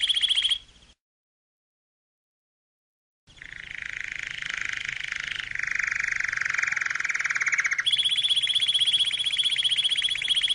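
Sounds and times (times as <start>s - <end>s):
canary singing: 0.0s - 1.0s, 3.3s - 10.5s.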